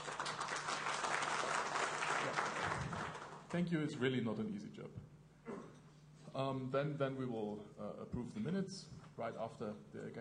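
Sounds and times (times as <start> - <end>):
audience applause for a meeting's note-taker: 0.0 - 3.5
speech: 3.5 - 5.2, 6.4 - 10.1.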